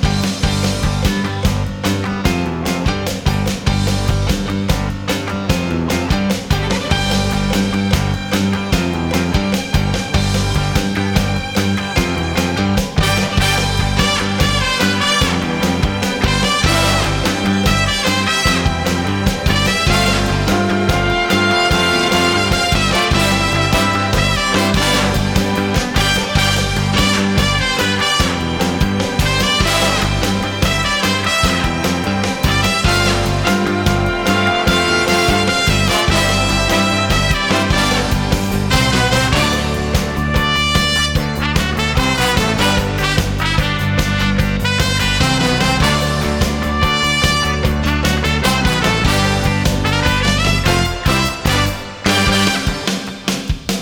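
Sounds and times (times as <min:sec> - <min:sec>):
background music: 0:00.1 - 0:53.7.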